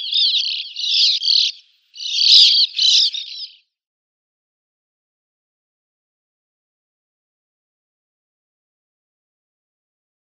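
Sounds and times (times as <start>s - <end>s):
Sand Martin calls: 0.0s - 3.6s.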